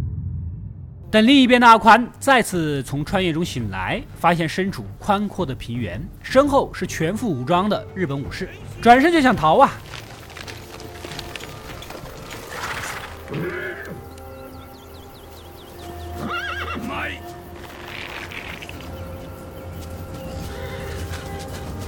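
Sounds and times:
speech: 0:01.1 - 0:09.9
galloping horse hooves: 0:08.1 - 0:21.8
horse neighing on a wide plain: 0:12.6 - 0:14.0, 0:16.2 - 0:18.9.

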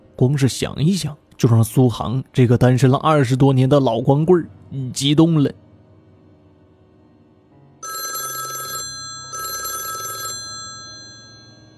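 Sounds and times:
speech: 0:00.2 - 0:05.6
alarm clock ringing: 0:07.8 - 0:11.7.

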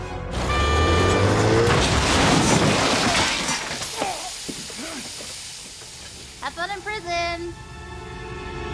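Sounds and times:
car engine roar: 0:00.3 - 0:02.8
car crash with shattering debris: 0:00.3 - 0:07.6.

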